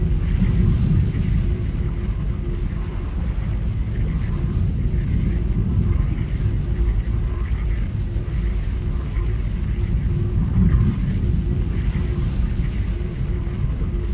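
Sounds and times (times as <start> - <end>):
underwater ambience: 0.0 - 14.1.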